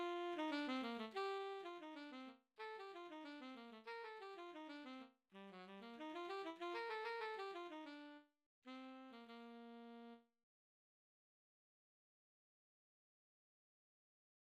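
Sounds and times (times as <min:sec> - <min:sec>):
tenor saxophone: 0:00.0 - 0:10.3.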